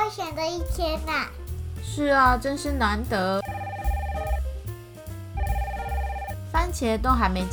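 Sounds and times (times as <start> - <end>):
speech: 0.1 - 3.4, 6.8 - 7.5
telephone ringing: 3.4 - 4.4, 5.4 - 6.4.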